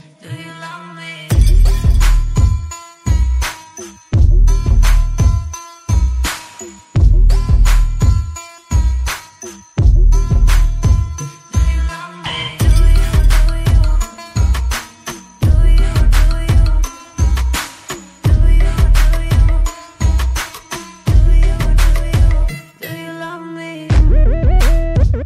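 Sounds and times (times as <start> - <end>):
boosted bass: 1.3 - 3.4, 4.2 - 6.2, 7.0 - 9.1, 9.8 - 11.9, 12.6 - 14.8, 15.4 - 17.6, 18.3 - 20.4, 21.1 - 22.5, 23.9 - 25.2.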